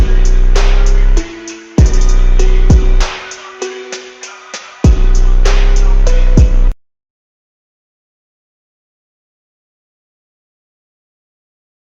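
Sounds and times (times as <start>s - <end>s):
hard Memphis drift phonk beat: 0.0s - 6.8s.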